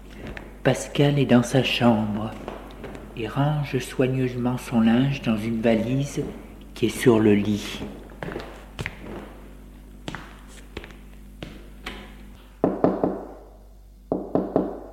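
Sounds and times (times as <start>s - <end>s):
speech: 0.6s - 2.5s, 3.2s - 8.4s
knocking on a door: 12.6s - 13.4s, 14.1s - 14.9s.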